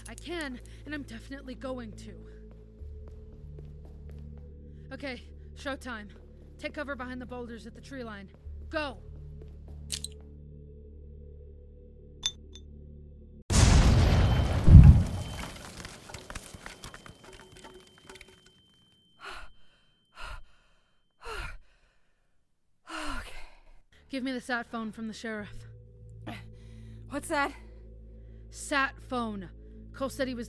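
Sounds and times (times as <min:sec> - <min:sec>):
speech: 0:00.2 - 0:02.4, 0:04.9 - 0:09.1, 0:24.1 - 0:25.6, 0:27.2 - 0:27.6, 0:28.6 - 0:30.4
grenade explosion: 0:13.5 - 0:16.6.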